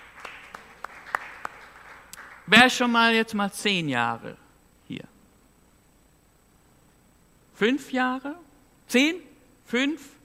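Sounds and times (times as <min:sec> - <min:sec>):
hand claps: 0:00.0 - 0:02.5
faint hiss: 0:00.0 - 0:10.2
speech: 0:02.5 - 0:05.1, 0:07.6 - 0:10.2.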